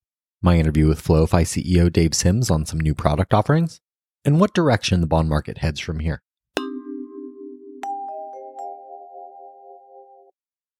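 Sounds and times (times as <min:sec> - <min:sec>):
speech: 0:00.4 - 0:06.2
airport chime at Philadelphia airport: 0:06.6 - 0:10.3.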